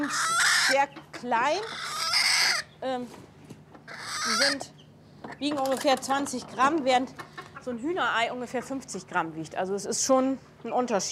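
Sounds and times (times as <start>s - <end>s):
brooding hen alarm call protecting eggs: 0.0s - 2.8s, 3.9s - 4.8s
speech: 0.1s - 1.9s, 2.8s - 3.3s, 4.3s - 11.1s.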